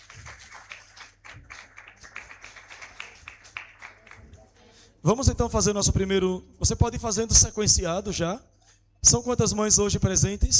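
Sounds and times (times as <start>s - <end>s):
audience applause: 0.0s - 4.8s
speech: 5.0s - 10.5s.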